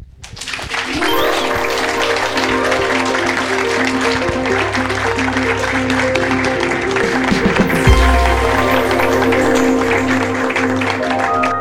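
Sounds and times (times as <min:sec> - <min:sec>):
audience applause: 0:00.2 - 0:11.5
sustained musical tones: 0:00.9 - 0:11.5.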